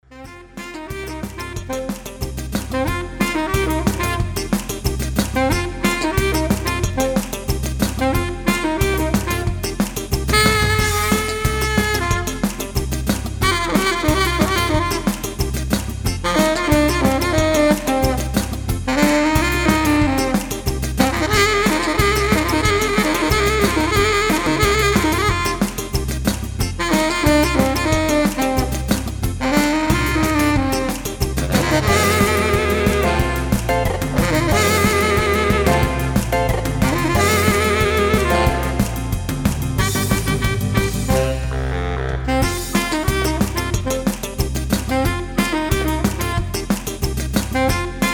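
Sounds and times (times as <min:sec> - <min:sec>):
saxophone instrumental: 0:00.0 - 0:48.1.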